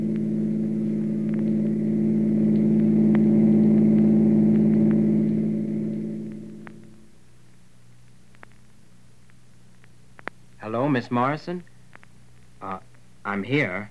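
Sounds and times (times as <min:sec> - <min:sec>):
car engine droning as the car pulls away: 0:00.0 - 0:07.0
speech: 0:11.0 - 0:11.7, 0:12.6 - 0:13.8.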